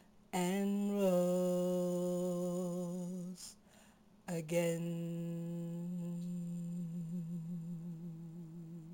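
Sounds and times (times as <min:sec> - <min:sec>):
tenor singing: 0:00.3 - 0:03.6, 0:04.3 - 0:08.9.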